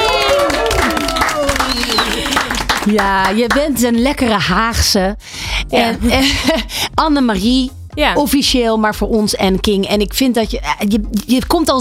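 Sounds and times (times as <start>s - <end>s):
cheering voices: 0.0s - 2.7s
laughter: 0.0s - 2.8s
crowd applauding: 0.0s - 3.8s
brief high whistle: 1.1s - 2.4s
speech: 2.9s - 11.7s.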